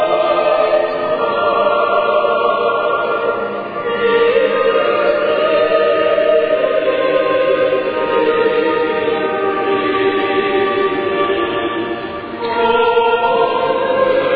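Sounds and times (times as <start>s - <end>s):
pilgrims' choir with soloist choirs singing: 0.0s - 14.3s.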